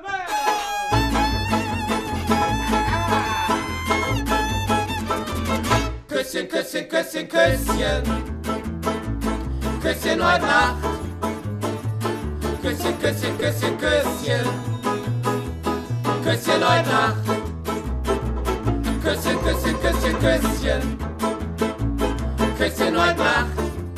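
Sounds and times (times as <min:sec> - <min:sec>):
polka music: 0:00.3 - 0:06.2, 0:07.4 - 0:23.9.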